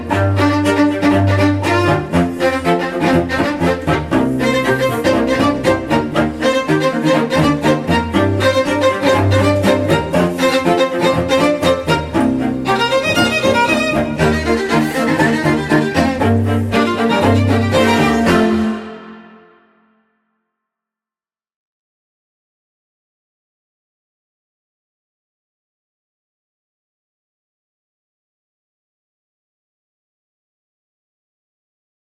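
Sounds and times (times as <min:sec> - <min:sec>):
strings: 0:00.0 - 0:20.0.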